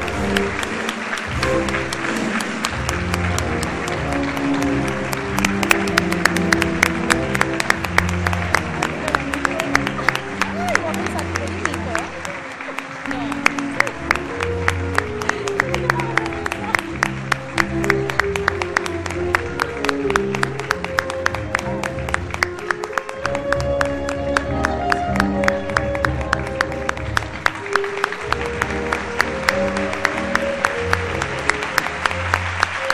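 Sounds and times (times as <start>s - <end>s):
audience applause: 0.0s - 32.9s
murmur of crowd voices: 8.6s - 17.2s.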